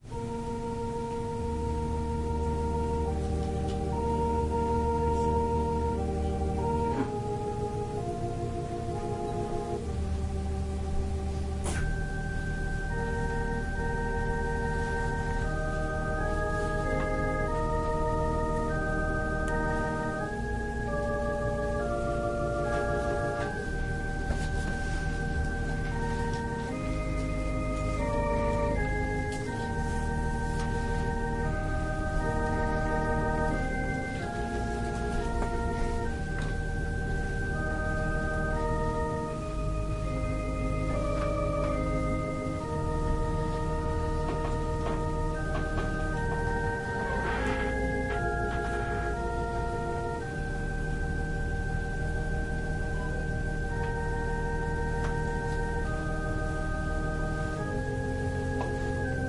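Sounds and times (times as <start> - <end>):
organ playing a prelude: 0.0 - 59.2.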